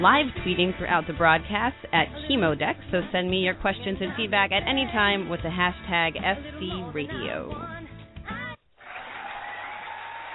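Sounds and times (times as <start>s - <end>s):
speech: 0.0s - 7.8s
crowd applause and cheering: 8.8s - 10.3s.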